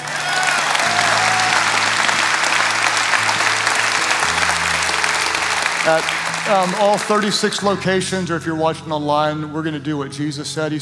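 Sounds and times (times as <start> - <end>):
audience clapping: 0.0 - 7.9
speech: 5.8 - 10.8.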